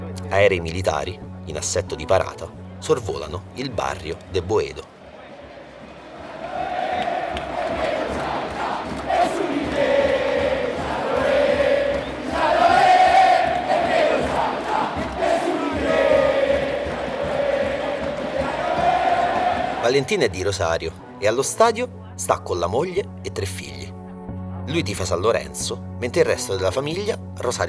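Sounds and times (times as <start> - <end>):
speech: 0.3 - 4.9, 19.9 - 23.8, 24.7 - 27.6
football fans in stadium roaring and chanting: 4.9 - 20.4
scattered shouts: 6.3 - 19.9
whistles: 11.9 - 12.4.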